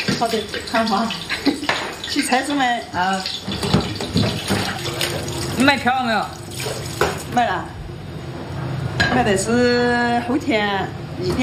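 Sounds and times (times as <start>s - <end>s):
running water from a tap rinsing a pot: 0.0s - 7.5s
speech: 0.2s - 1.3s, 2.1s - 3.6s, 5.6s - 6.8s, 7.4s - 7.8s, 9.2s - 11.4s.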